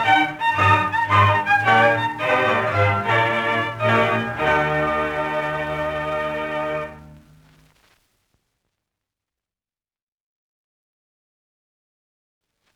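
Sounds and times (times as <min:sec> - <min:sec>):
baroque concerto in D major allegro movement: 0:00.0 - 0:07.4.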